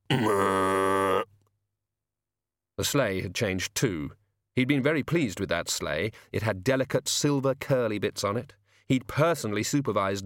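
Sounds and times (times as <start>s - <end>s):
person imitating pig grunt: 0.0s - 1.3s
speech: 0.1s - 0.5s, 2.8s - 10.2s.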